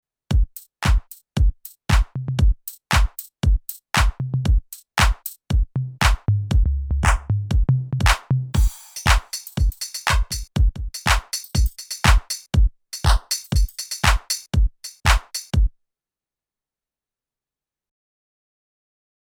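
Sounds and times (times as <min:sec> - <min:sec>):
drum kit: 0:00.3 - 0:15.6.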